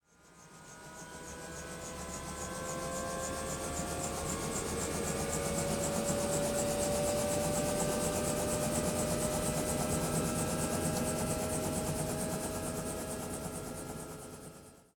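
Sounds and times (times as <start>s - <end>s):
helicopter starting up: 1.0s - 14.7s.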